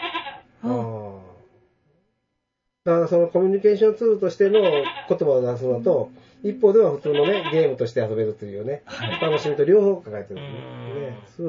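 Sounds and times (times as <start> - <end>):
large and small goats bleating in a video game: 0.0 - 0.4, 4.4 - 5.3, 6.8 - 7.8, 8.9 - 9.7
speech: 2.8 - 11.4.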